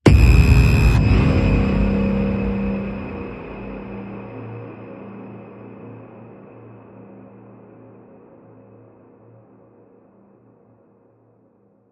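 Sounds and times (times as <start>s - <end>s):
blast: 0.0s - 4.2s.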